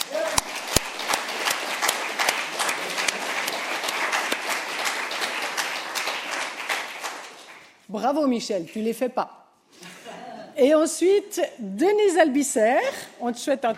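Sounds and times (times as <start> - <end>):
audience applause: 0.0 - 7.7
speech: 7.9 - 9.4, 10.6 - 13.7.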